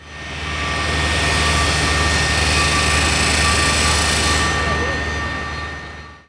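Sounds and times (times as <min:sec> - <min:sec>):
saw: 0:00.0 - 0:06.0
construction ambience: 0:00.0 - 0:06.2.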